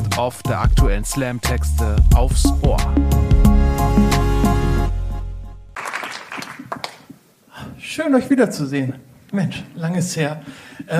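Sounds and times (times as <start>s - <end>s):
speech: 0.2s - 4.2s, 7.9s - 10.9s
audience applause: 5.8s - 7.1s.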